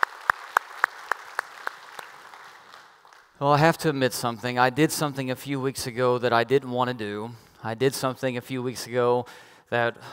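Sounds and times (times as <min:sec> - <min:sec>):
hand claps welcoming online viewers into a church study session: 0:00.0 - 0:03.4
speech: 0:03.4 - 0:10.1.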